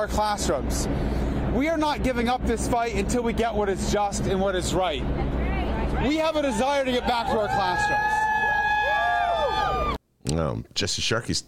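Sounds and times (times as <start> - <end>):
speech: 0.0 - 5.4, 6.0 - 8.3, 10.3 - 11.4
crowd cheering: 5.7 - 10.0.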